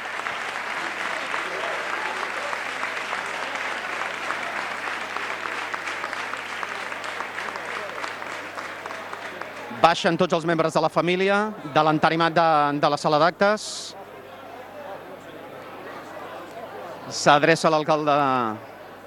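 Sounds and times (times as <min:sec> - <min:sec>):
applause in the Tarragona city hall assembly room: 0:00.0 - 0:10.8
speech: 0:09.8 - 0:14.0, 0:17.1 - 0:18.7.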